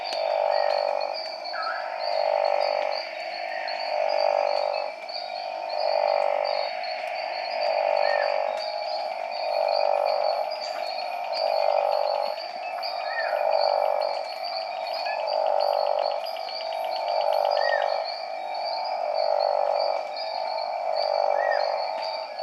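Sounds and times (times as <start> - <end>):
Boie's Smooth Horned Frog giving long low droning calls: 0.0 - 22.4.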